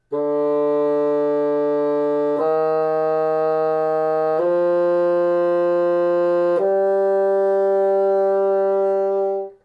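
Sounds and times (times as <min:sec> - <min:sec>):
bassoon: 0:00.0 - 0:09.6.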